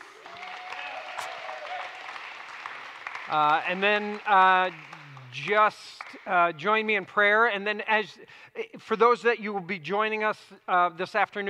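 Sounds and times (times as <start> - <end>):
crowd applauding: 0.0 - 6.3
speech: 3.3 - 11.4.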